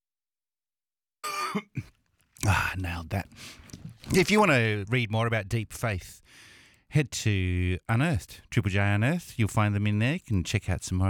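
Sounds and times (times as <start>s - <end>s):
person coughing: 1.2s - 1.9s
speech: 1.5s - 11.0s.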